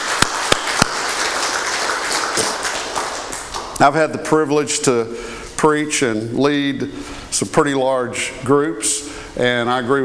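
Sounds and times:
audience applause: 0.0s - 3.8s
speech: 3.8s - 10.0s.

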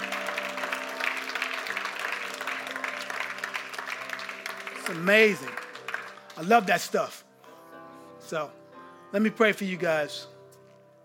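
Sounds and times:
audience clapping: 0.0s - 7.1s
speech: 4.9s - 5.6s, 6.4s - 7.2s, 8.3s - 10.3s.

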